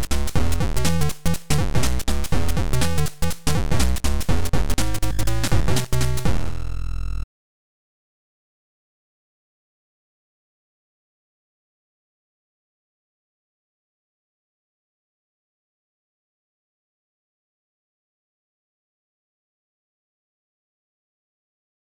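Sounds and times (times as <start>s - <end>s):
funky music: 0.0s - 7.2s.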